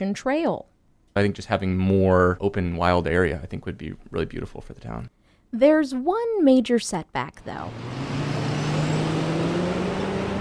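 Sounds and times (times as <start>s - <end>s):
speech: 0.0s - 8.2s
road traffic on two busy roads beside a mall in Bloomington-Normal: 7.4s - 10.3s.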